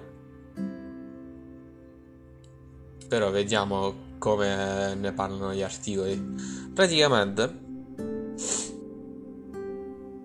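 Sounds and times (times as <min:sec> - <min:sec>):
speech: 0:03.1 - 0:07.6
sharp nasal sniff from a person with an allergy: 0:08.4 - 0:08.8.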